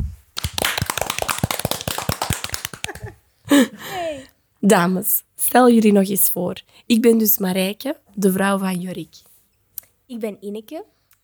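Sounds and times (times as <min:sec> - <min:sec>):
small group applauding: 0:00.4 - 0:04.0
speech: 0:03.6 - 0:03.9, 0:04.6 - 0:09.3, 0:10.1 - 0:11.0.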